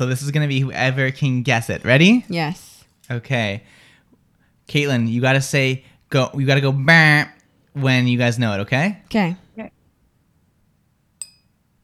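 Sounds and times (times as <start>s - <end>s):
speech: 0.0s - 3.8s, 4.7s - 9.8s
tapping a glass: 11.2s - 11.6s.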